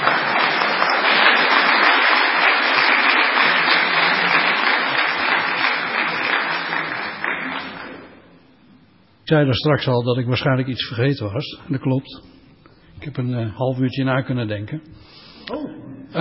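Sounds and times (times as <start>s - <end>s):
audience applause: 0.0s - 8.2s
speech: 9.3s - 12.4s, 13.0s - 16.1s.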